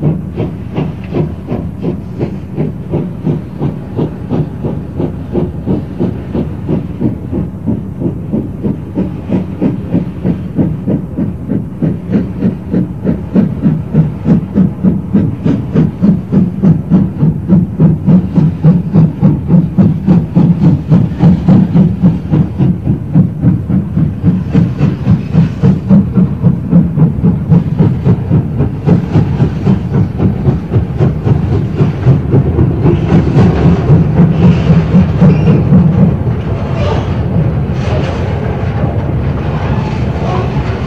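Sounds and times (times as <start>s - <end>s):
railway in Alsdorf: 0.0s - 40.8s
spinning mine whistles at a railway in Alsdorf: 35.2s - 35.9s.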